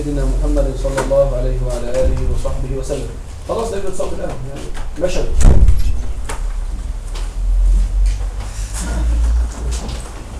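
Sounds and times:
speech: 0:00.0 - 0:05.9
low steady rumble: 0:01.4 - 0:10.0
door being pushed shut: 0:05.3 - 0:06.4.

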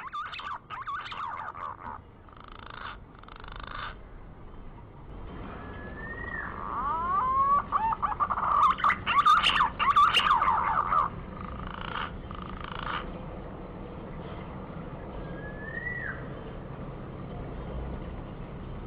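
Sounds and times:
green pigeon lure call of sweeping quavering whistles: 0:00.0 - 0:02.0, 0:05.6 - 0:13.0.

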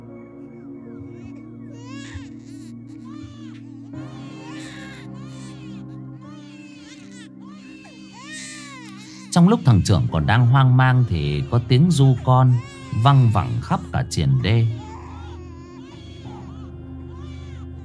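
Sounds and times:
babies crying at night: 0:00.1 - 0:17.8
speech: 0:09.4 - 0:14.9.

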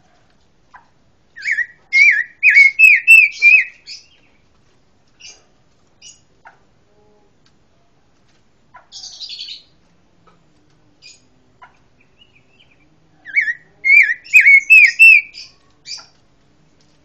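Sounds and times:
pancawarna songbird singing wavering whistled notes, buzzy chirps and rasping trill: 0:01.3 - 0:04.3, 0:12.0 - 0:16.1.

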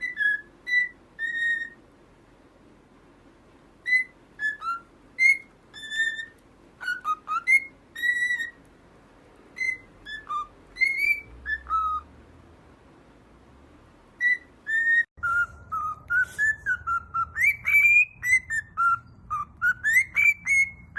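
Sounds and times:
cockatiel whistling: 0:00.0 - 0:01.8, 0:03.8 - 0:08.6, 0:09.5 - 0:12.1, 0:14.2 - 0:20.9.

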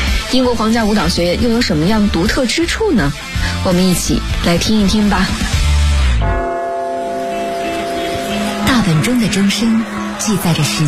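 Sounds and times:
speech: 0:00.3 - 0:05.6, 0:06.2 - 0:06.5, 0:09.0 - 0:10.8
boat horn on the river Thames: 0:06.2 - 0:10.2.

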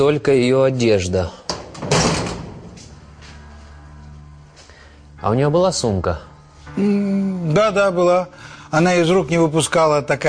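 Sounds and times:
speech: 0:00.0 - 0:01.4, 0:05.2 - 0:10.2
locker door rattling open: 0:01.5 - 0:02.8.

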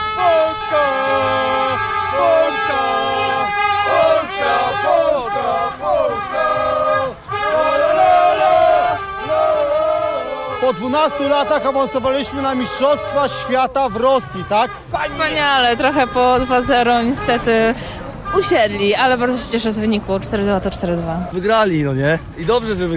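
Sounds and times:
football fans in stadium crowd cheering and chanting: 0:00.2 - 0:11.6
speech: 0:10.8 - 0:22.9.

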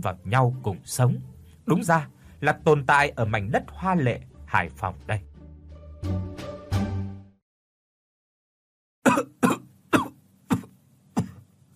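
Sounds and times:
speech: 0:00.0 - 0:05.3, 0:06.0 - 0:06.3
heavy repeated coughing: 0:09.0 - 0:11.5.

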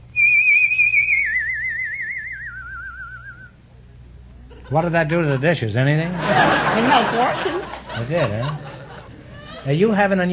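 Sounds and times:
human whistling a vibrant tone: 0:00.1 - 0:03.6
laughter: 0:04.4 - 0:10.1
speech: 0:04.7 - 0:08.7, 0:09.6 - 0:10.3.

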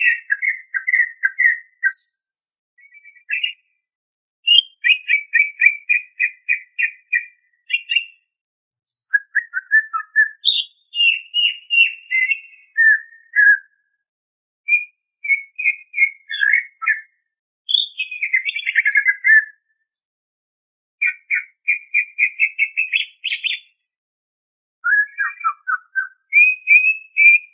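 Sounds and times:
greater green leafbird song of fast varied whistled notes: 0:00.0 - 0:03.8, 0:04.4 - 0:08.3, 0:08.9 - 0:13.9, 0:14.7 - 0:20.0, 0:21.0 - 0:23.8, 0:24.8 - 0:27.5.

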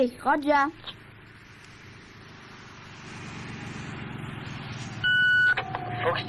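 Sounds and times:
camper van engine drone approaching: 0:00.9 - 0:06.2
short electronic tone: 0:05.0 - 0:06.2.

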